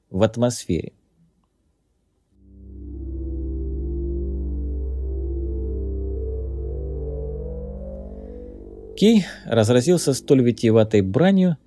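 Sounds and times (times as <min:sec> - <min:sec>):
speech: 0:00.1 - 0:01.0, 0:09.0 - 0:11.6
spaceship engine hum: 0:02.4 - 0:10.9.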